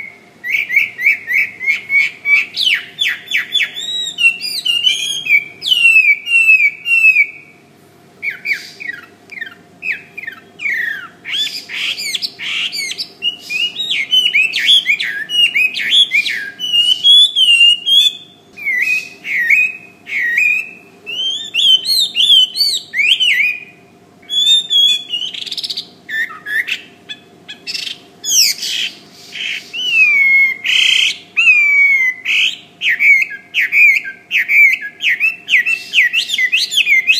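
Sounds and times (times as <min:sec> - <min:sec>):
bird whistled song: 0:00.0 - 0:07.6, 0:08.2 - 0:37.1
faint steady hum: 0:00.0 - 0:37.1.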